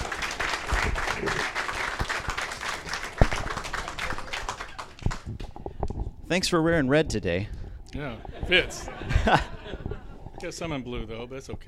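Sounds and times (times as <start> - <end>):
audience applause: 0.0 - 5.4
speech: 6.3 - 9.5, 10.4 - 11.6
laughter: 8.0 - 10.2.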